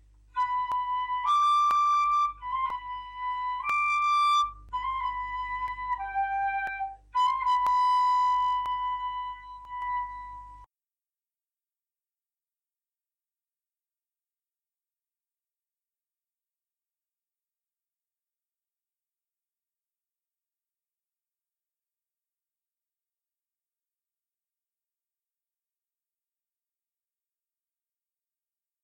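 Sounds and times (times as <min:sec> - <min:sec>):
flute: 0:00.3 - 0:10.7.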